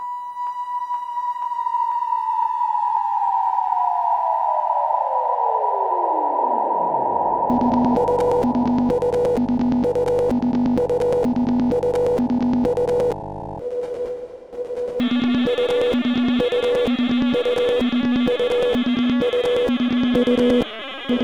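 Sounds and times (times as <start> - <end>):
sine wave tone: 0.0 - 21.2.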